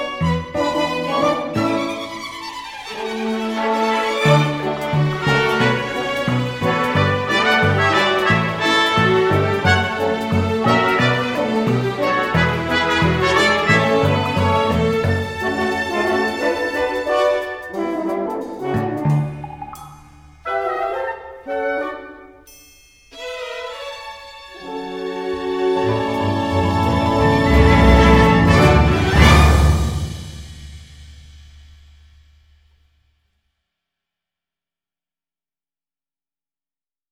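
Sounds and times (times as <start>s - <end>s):
comedy instrumental music: 0.0s - 22.2s, 23.1s - 30.2s.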